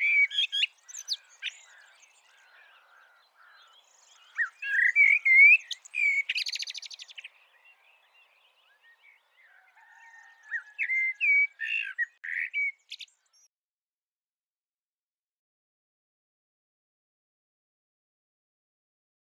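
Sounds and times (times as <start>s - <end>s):
common blackbird Turdus merula giving clear slurred whistled notes: 0.0s - 1.7s, 4.2s - 7.2s, 10.5s - 12.8s.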